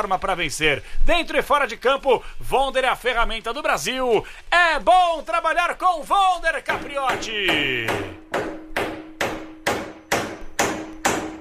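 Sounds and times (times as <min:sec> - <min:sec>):
speech: 0:00.0 - 0:08.5
hammer striking in a rhythm: 0:06.7 - 0:11.3.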